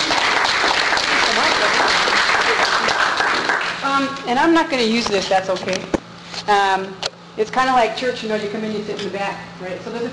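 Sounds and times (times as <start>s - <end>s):
audience applause welcoming a speaker: 0.0s - 4.0s
speech: 4.0s - 10.1s.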